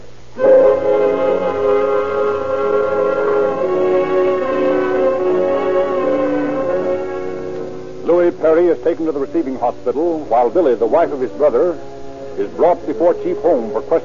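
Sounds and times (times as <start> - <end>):
ambulance siren: 0.4 - 8.0
speech: 8.8 - 14.0.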